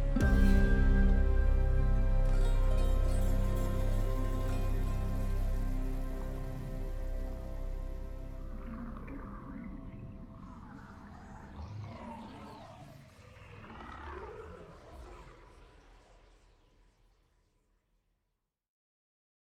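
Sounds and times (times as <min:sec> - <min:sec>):
home main menu music: 0:00.0 - 0:10.4.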